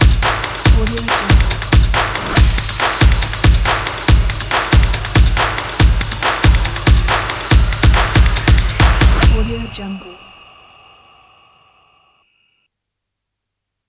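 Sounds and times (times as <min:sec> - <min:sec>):
fashion stomps percussion: 0:00.0 - 0:10.0.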